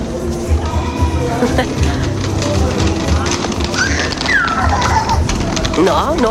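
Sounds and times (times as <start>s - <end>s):
laughter: 0.6s - 6.2s
child screaming in city street: 3.8s - 5.3s.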